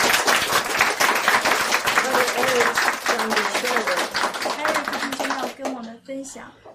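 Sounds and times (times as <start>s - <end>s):
audience clapping: 0.0s - 6.0s
speech: 6.2s - 6.7s.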